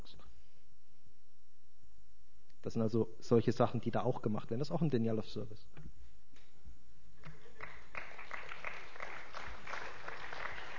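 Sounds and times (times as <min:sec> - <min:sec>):
speech: 0:02.6 - 0:06.0
audience clapping: 0:07.2 - 0:10.7.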